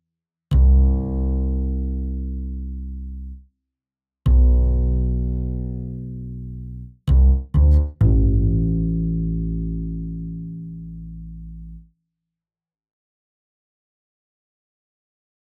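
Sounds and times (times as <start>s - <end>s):
bouncing bass: 0.5s - 3.4s, 4.3s - 11.8s.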